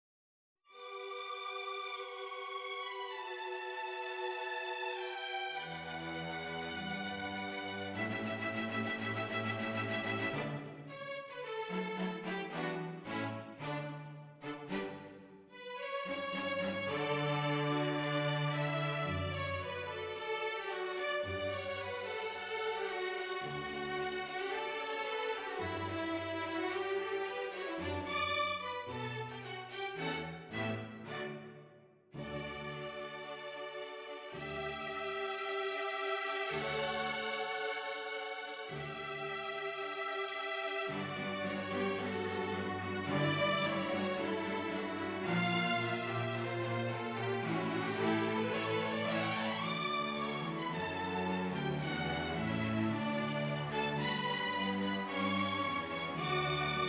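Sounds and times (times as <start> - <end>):
string quartet: 0.7 - 56.8.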